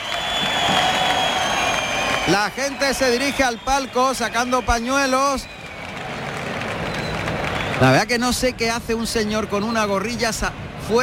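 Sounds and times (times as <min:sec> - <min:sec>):
bullring crowd at a bullfight applauding and cheering to demand a pardon for the bull: 0:00.0 - 0:08.5
speech: 0:02.3 - 0:05.6, 0:07.8 - 0:11.0.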